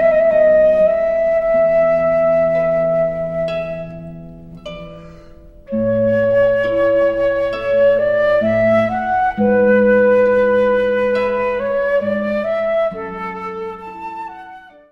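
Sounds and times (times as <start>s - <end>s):
flute playing arioso: 0.0s - 5.0s, 5.7s - 14.9s
harp playing arioso: 0.0s - 14.9s.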